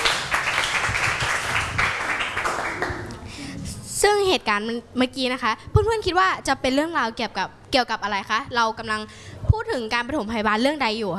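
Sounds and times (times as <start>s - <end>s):
applause for the performers: 0.0s - 3.2s
speech: 4.3s - 11.1s.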